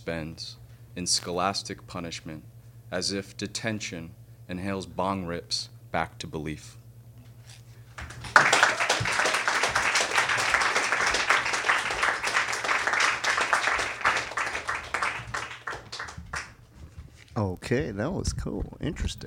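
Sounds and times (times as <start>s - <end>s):
speech: 0.0s - 6.8s, 17.4s - 19.2s
audience applause: 8.0s - 16.6s.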